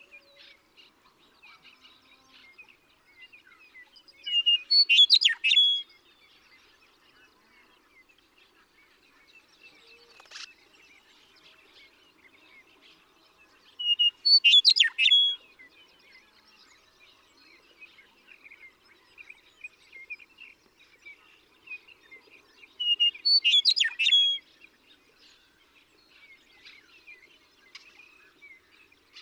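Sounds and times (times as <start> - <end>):
Western meadowlark song: 4.2 - 6.0, 13.8 - 15.4, 22.8 - 24.4.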